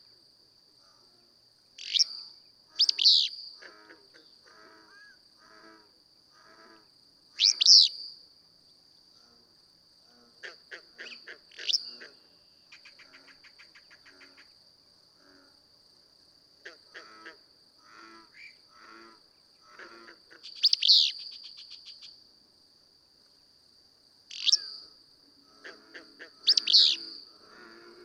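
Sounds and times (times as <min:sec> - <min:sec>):
Willow Flycatcher calling: 0:01.8 - 0:03.4, 0:07.4 - 0:08.1, 0:20.4 - 0:22.1, 0:24.3 - 0:24.8, 0:26.4 - 0:27.2.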